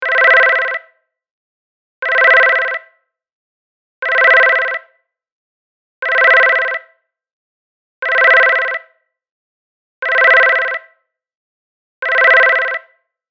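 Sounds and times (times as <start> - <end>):
ringtone: 0.0 - 0.9, 2.0 - 2.9, 4.0 - 5.0, 6.0 - 7.0, 8.0 - 8.9, 10.0 - 11.0, 12.0 - 13.0.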